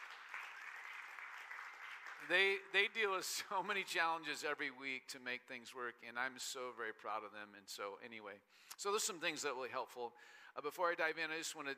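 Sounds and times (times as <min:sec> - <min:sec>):
church congregation applauding the tech team: 0:00.0 - 0:04.1
speech: 0:02.2 - 0:11.7.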